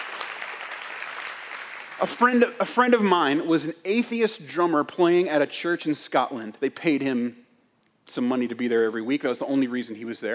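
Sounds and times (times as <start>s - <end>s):
audience applause: 0.0s - 2.2s
speech: 2.0s - 7.4s, 8.1s - 10.3s.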